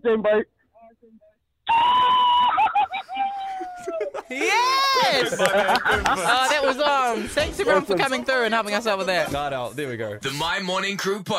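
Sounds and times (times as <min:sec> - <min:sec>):
speech: 0:00.0 - 0:00.6, 0:04.3 - 0:11.3
audience cheering: 0:01.7 - 0:06.8
laughter: 0:01.7 - 0:09.3.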